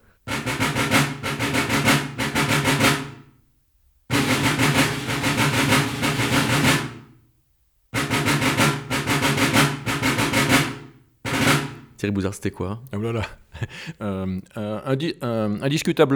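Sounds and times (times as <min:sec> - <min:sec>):
military drum call from 1754: 0:00.0 - 0:03.3, 0:04.1 - 0:07.2, 0:08.0 - 0:12.1
speech: 0:12.0 - 0:16.1
laughter: 0:13.0 - 0:14.6.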